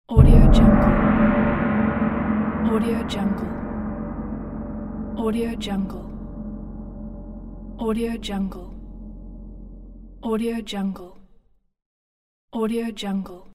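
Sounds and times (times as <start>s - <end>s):
gong: 0.1s - 10.3s.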